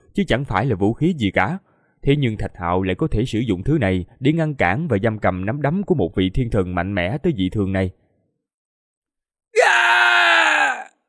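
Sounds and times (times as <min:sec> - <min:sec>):
speech: 0:00.2 - 0:08.0
ape beast screaming in pain: 0:09.6 - 0:10.9.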